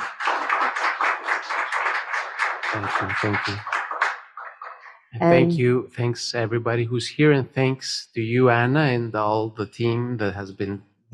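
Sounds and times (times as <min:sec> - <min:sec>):
audience applause: 0:00.0 - 0:04.9
speech: 0:02.7 - 0:03.7, 0:05.2 - 0:11.1
laughter: 0:02.8 - 0:03.6, 0:05.2 - 0:10.8.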